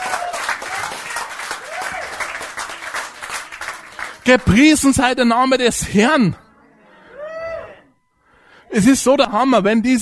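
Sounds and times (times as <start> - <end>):
audience applause: 0.0 - 4.3
speech: 4.3 - 6.4, 8.8 - 10.0.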